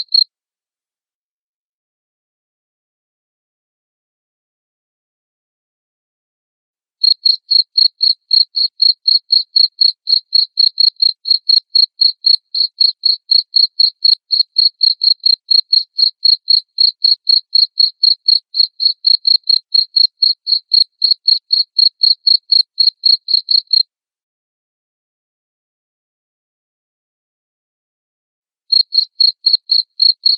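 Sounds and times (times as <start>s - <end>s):
cricket chirping: 0.0s - 0.2s, 7.0s - 23.8s, 28.7s - 30.3s.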